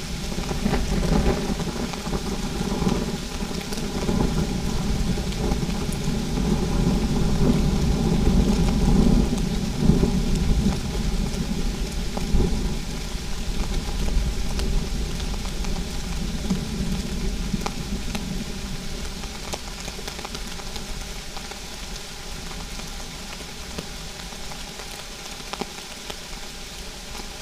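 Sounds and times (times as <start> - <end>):
thunder shower: 0.0 - 20.6.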